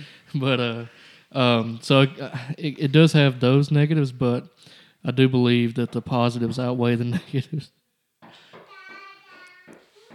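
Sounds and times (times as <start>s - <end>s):
speech: 0.0s - 7.8s
two-year-old daughter knocking on the door: 8.2s - 10.1s.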